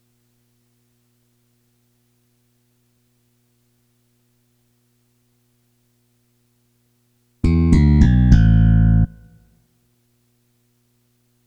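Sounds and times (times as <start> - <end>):
bass: 7.4 - 9.4.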